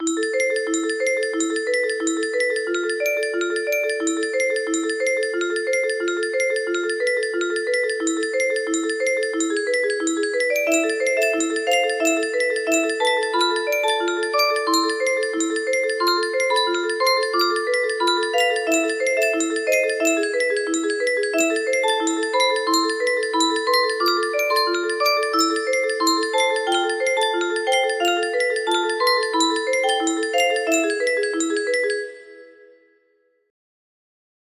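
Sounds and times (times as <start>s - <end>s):
tense music box: 0.0s - 32.7s.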